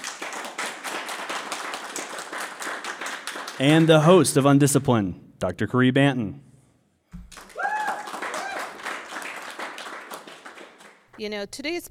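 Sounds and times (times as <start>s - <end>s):
audience applause: 0.0s - 4.2s, 7.3s - 11.1s
speech: 3.6s - 6.5s, 11.2s - 11.8s.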